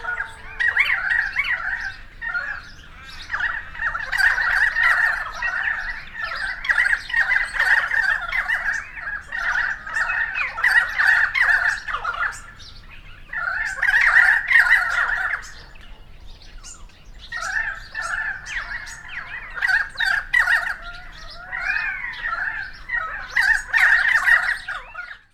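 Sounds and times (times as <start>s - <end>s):
currawongs squawking and gurgling in chorus: 0.0s - 25.3s.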